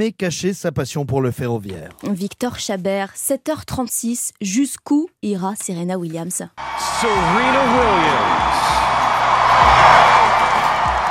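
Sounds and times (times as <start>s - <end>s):
speech: 0.0s - 10.3s
tennis crowd applauding: 6.6s - 11.1s.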